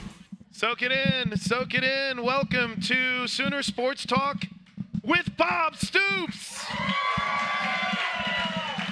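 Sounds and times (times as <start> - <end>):
speech: 0.6 - 7.2
crowd applause: 6.7 - 8.9.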